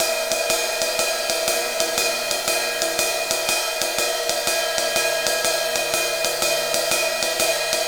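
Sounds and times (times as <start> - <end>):
ride cymbal pattern: 0.0 - 7.8.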